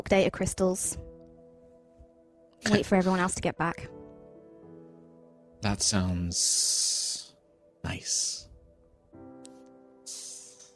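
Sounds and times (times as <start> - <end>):
speech: 0.0 - 1.1, 2.6 - 4.0, 5.6 - 7.0, 7.8 - 8.4
snakes hissing: 10.1 - 10.7.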